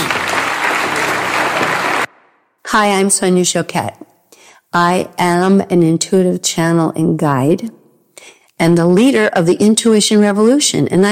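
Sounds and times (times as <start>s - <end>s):
church congregation applauding after a closing prayer: 0.0s - 2.1s
speech: 2.8s - 4.1s, 4.7s - 7.8s, 8.6s - 11.0s.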